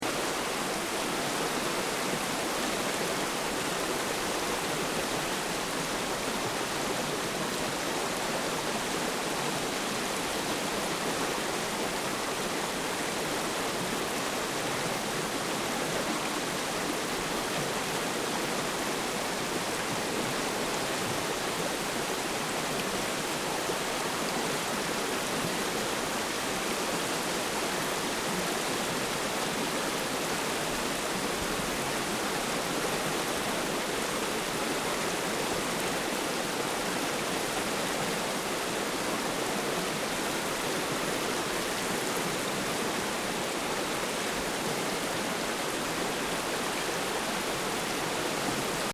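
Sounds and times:
fast distant water stream over rocks: 0.0s - 48.9s.

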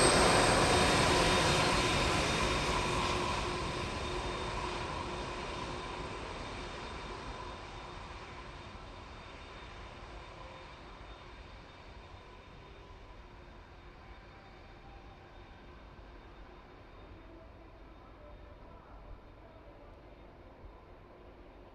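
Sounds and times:
1995 Airbus A320 landing: 0.0s - 8.6s.

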